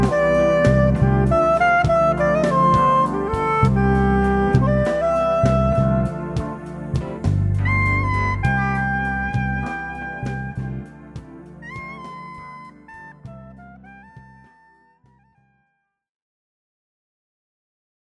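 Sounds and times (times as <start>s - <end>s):
pop ballad: 0.0s - 14.3s.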